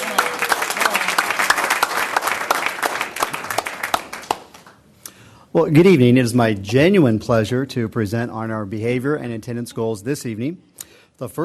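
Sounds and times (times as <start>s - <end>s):
audience applause at an evening meeting after a staff-recognition speech: 0.0s - 4.9s
speech: 5.6s - 11.4s.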